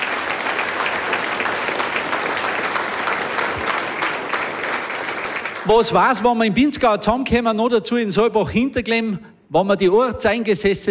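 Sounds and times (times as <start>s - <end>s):
applause: 0.0s - 6.3s
speech: 5.7s - 10.9s.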